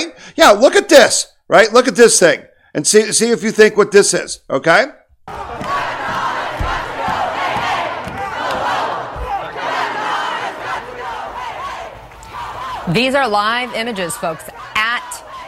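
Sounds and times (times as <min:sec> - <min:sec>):
speech: 0:00.4 - 0:05.5, 0:12.9 - 0:14.6
low thumps: 0:05.3 - 0:09.4
large protest crowd shouting: 0:05.3 - 0:15.4.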